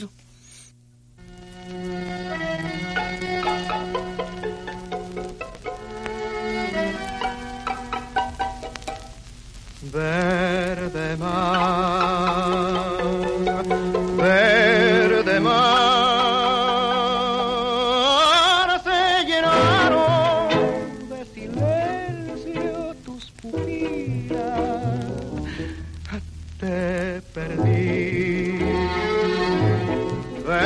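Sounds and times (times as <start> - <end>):
speech: 0.0 - 0.2
faint crackling record surface hiss: 0.0 - 30.6
1930s tango record orchestra playing: 1.3 - 9.0, 12.4 - 16.0, 19.5 - 21.1, 27.5 - 30.6
vocalist singing tango: 9.8 - 30.6.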